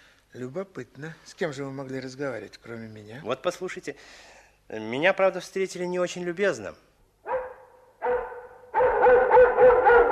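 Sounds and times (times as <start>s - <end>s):
speech: 0.3s - 6.9s
dog barking and growling: 7.3s - 10.1s.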